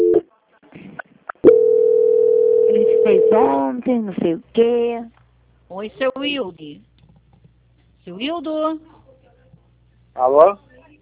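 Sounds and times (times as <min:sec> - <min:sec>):
steady low telephone call transfer tone: 0:00.0 - 0:00.2, 0:01.5 - 0:03.5
speech: 0:03.1 - 0:06.9, 0:08.0 - 0:08.9, 0:10.2 - 0:10.7.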